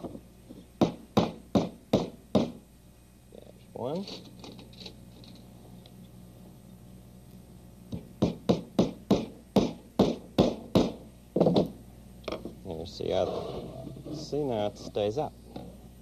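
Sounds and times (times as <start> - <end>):
hammer driving nails into wood: 0.8 - 2.6, 7.9 - 11.7
speech: 3.9 - 4.3, 13.0 - 15.4.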